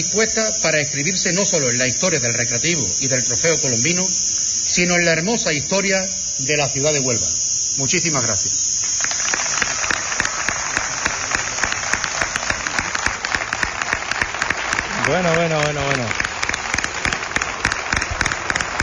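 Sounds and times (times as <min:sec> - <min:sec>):
speech: 0:00.0 - 0:08.7, 0:15.1 - 0:16.3
audience applause: 0:08.8 - 0:18.8.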